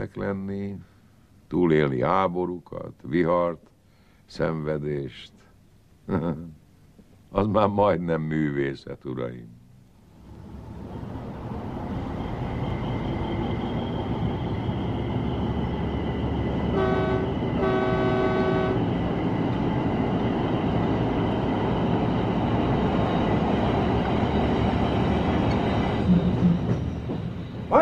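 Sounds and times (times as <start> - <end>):
train rolling by on the tracks: 0.0 - 3.4, 9.6 - 27.8
speech: 0.1 - 0.9, 1.5 - 3.7, 4.3 - 5.5, 6.1 - 6.6, 7.3 - 9.6
bright train horn blasts: 16.6 - 19.3.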